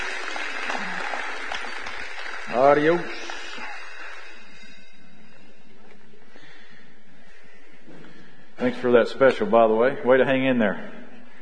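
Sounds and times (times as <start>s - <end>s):
crowd clapping: 0.0s - 4.9s
speech: 2.5s - 3.2s, 8.6s - 11.0s.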